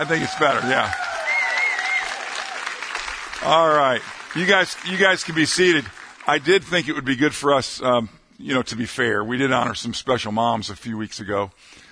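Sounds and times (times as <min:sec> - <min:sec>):
speech: 0:00.0 - 0:01.0, 0:03.4 - 0:11.8
audience clapping: 0:00.0 - 0:07.2.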